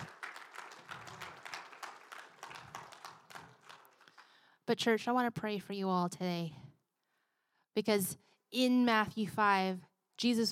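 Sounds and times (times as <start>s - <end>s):
church audience clapping: 0.0s - 4.4s
speech: 4.7s - 6.6s, 7.8s - 10.5s.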